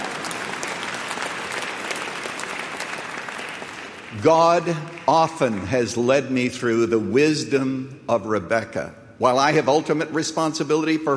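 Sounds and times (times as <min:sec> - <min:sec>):
audience clapping: 0:00.0 - 0:06.4
speech: 0:04.1 - 0:11.1.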